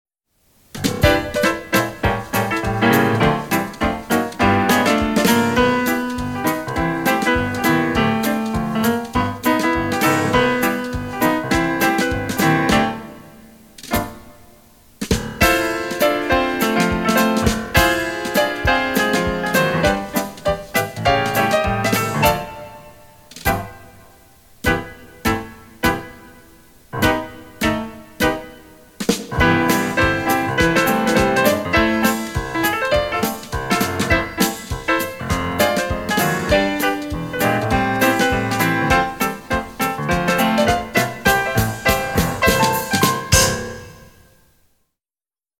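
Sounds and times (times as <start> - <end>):
quick jazz played very fast: 0.6 - 44.4
tap dancing: 0.8 - 13.0, 15.1 - 22.5, 29.1 - 43.6.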